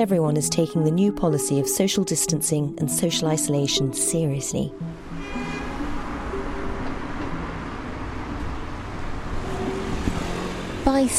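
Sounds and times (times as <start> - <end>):
speech: 0.0 - 5.6, 11.0 - 11.1
street traffic rumble: 4.4 - 11.1.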